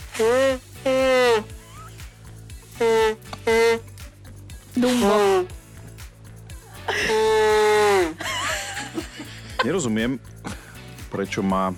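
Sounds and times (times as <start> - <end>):
comic trumpet-like nose-blowing honk: 0.0 - 1.9, 2.7 - 4.0, 4.8 - 5.6, 6.9 - 8.2
steady rhythmic music bed: 0.0 - 11.7
speech: 0.2 - 1.5, 4.8 - 5.2, 9.8 - 10.4, 11.1 - 11.7.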